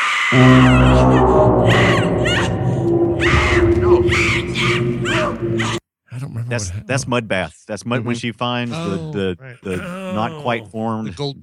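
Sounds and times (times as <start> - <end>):
speech: 0.3 - 0.8, 6.5 - 11.4
screams: 0.3 - 5.8.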